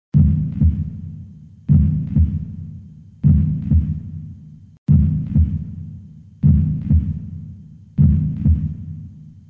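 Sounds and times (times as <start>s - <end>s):
heartbeat: 0.1s - 1.1s, 1.7s - 2.6s, 3.2s - 4.2s, 4.9s - 5.8s, 6.4s - 7.4s, 8.0s - 9.1s.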